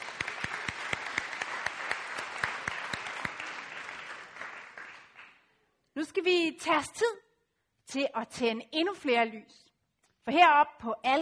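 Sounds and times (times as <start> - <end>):
applause: 0.0 - 5.6
speech: 6.0 - 7.3, 7.9 - 9.6, 10.3 - 11.2.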